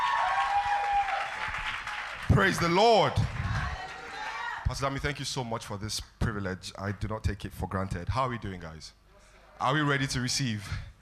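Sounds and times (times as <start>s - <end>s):
audience clapping: 0.0s - 5.0s
speech: 2.3s - 3.4s, 4.7s - 9.0s, 9.6s - 10.9s.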